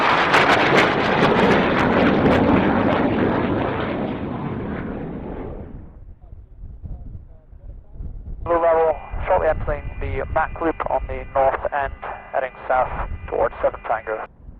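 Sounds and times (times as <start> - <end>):
jet engine: 0.0 - 6.1, 8.5 - 14.5
radio chatter: 8.5 - 14.3.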